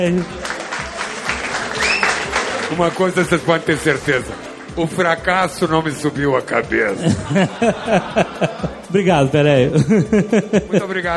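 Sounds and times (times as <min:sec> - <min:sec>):
speech: 0:00.0 - 0:00.4, 0:02.7 - 0:11.1
audience applause: 0:00.2 - 0:04.2
laughter: 0:06.8 - 0:11.1.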